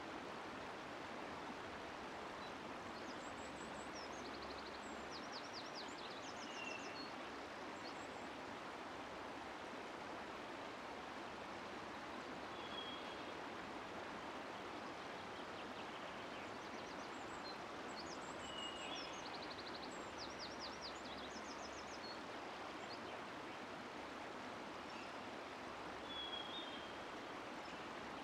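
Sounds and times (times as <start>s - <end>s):
forest river flowing: 0.0s - 28.2s.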